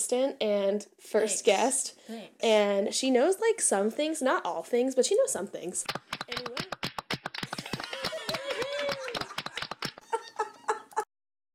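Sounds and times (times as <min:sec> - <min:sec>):
speech: 0:00.1 - 0:06.5
soundboard clapping sound effect: 0:05.9 - 0:10.1
laughter: 0:07.5 - 0:11.1.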